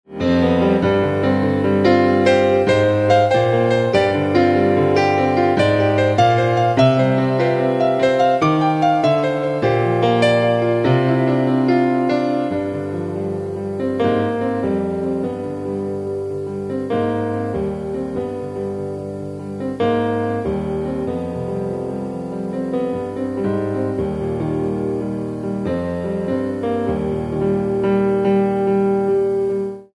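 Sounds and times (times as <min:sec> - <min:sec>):
piano: 0:00.1 - 0:29.9.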